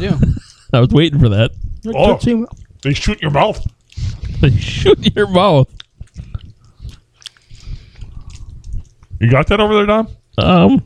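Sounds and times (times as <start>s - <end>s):
speech: 0.0s - 5.8s, 9.2s - 10.8s
chewing a chewy Thai candy resembling a Tootsie Roll: 1.6s - 4.8s, 5.6s - 9.2s.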